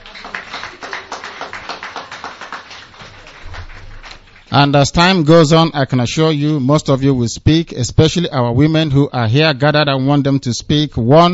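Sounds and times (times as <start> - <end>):
audience applause: 0.0 - 4.7
speech: 4.5 - 11.3.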